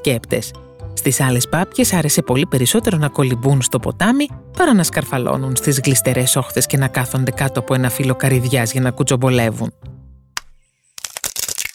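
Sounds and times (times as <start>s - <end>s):
speech: 0.0s - 9.9s
eggshells cracking open: 10.9s - 11.7s.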